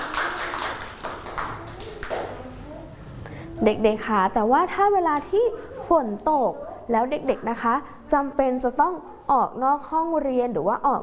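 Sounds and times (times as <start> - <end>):
children clapping: 0.0 - 2.4
speech: 3.6 - 11.0.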